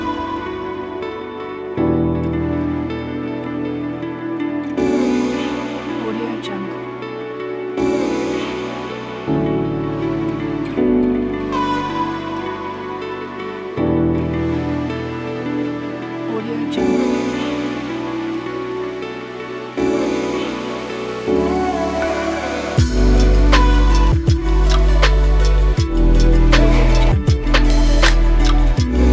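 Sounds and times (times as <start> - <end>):
lofi chill beat: 0.0 - 29.1.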